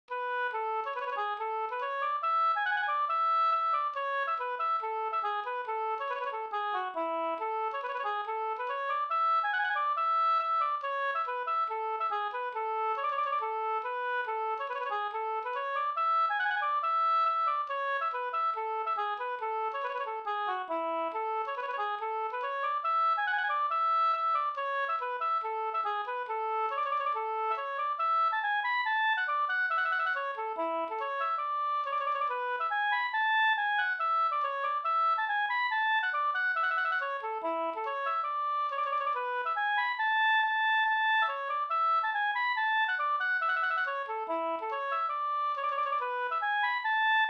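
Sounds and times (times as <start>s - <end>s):
reinlender folk dance music: 0.9s - 47.2s.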